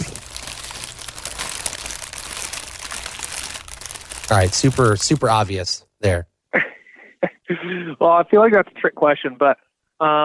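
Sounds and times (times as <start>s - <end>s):
fast food paper wrapper crinkling: 0.0s - 5.6s
speech: 4.3s - 6.7s, 7.5s - 10.2s.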